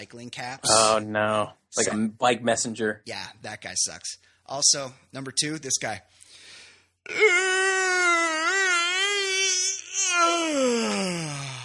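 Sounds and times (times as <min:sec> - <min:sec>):
speech: 0:00.0 - 0:06.2, 0:07.0 - 0:08.1, 0:10.0 - 0:11.6
exaggerated voiced yawn: 0:07.0 - 0:11.6.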